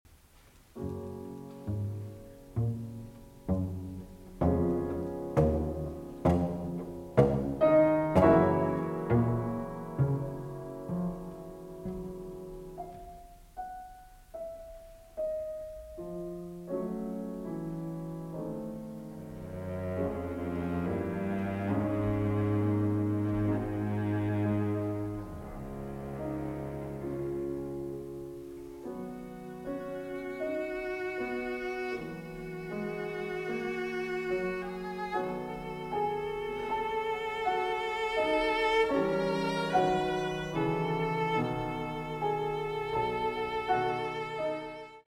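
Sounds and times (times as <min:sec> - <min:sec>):
live slow adagio cello sonata movement: 0:00.3 - 0:45.0.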